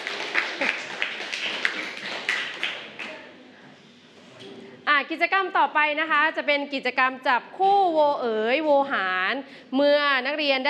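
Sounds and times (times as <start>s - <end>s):
classroom applause: 0.0s - 3.3s
speech: 5.0s - 10.6s.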